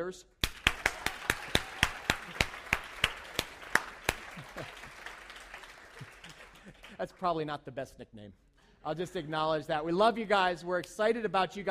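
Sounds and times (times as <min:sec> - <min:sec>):
speech: 0:00.0 - 0:00.4, 0:07.0 - 0:11.6
audience clapping: 0:00.4 - 0:07.5
laughter: 0:04.0 - 0:07.0.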